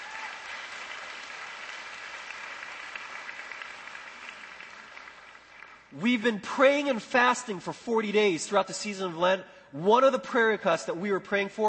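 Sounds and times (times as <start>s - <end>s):
audience applause: 0.0s - 5.9s
speech: 5.9s - 11.6s.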